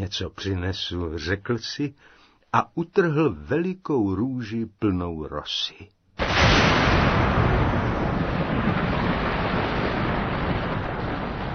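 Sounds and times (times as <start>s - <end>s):
speech: 0.0s - 6.6s
thunder rumble shaking the ground: 6.2s - 11.5s.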